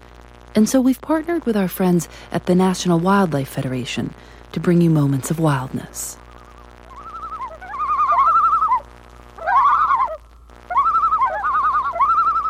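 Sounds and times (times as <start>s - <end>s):
speech: 0.6s - 6.2s
common loon calling in a wavering tremolo: 6.3s - 12.4s.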